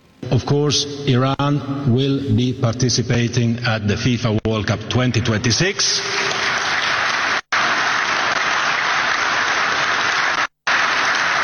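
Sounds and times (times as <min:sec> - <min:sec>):
speech: 0:00.2 - 0:06.4
applause: 0:06.1 - 0:11.4.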